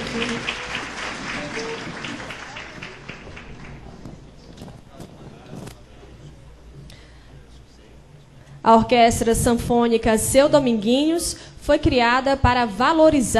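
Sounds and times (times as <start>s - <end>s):
audience applause: 0.0s - 4.6s
speech: 8.7s - 13.3s.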